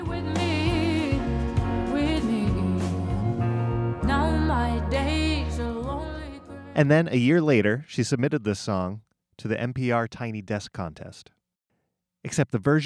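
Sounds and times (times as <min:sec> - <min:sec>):
introspective pop song backed by guitar and piano: 0:00.0 - 0:06.9
speech: 0:06.8 - 0:11.4, 0:12.2 - 0:12.8.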